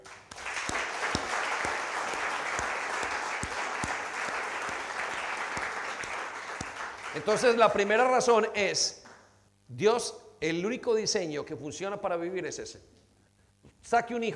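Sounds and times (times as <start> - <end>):
audience applauding: 0.0 - 7.9
speech: 7.2 - 9.0, 9.7 - 12.9, 13.8 - 14.3.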